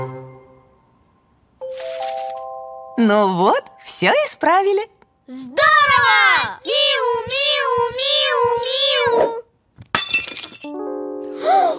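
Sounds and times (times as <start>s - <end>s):
speech: 3.0s - 9.4s
ceramic mug breaking by accident: 9.9s - 10.7s.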